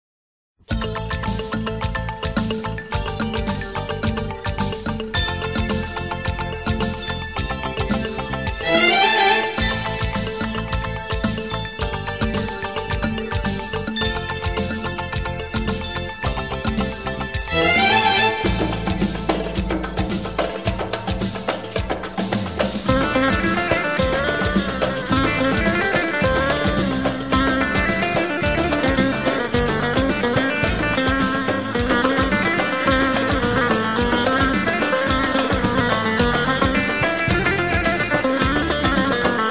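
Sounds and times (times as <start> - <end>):
instrumental music: 0.6 - 39.4.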